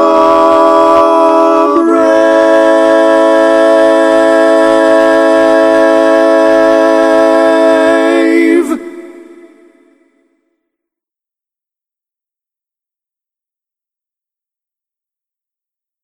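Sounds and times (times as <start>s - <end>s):
national anthem arrangement without bass: 0.0s - 10.2s.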